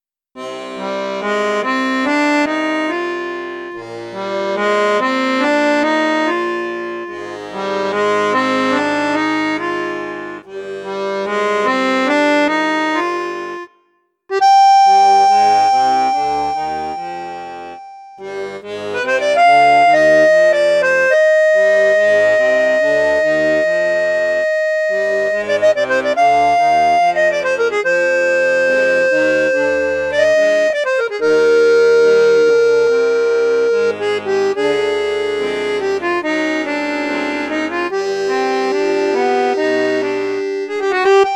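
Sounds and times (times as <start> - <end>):
accordion in bassoon register: 0.4 - 41.3.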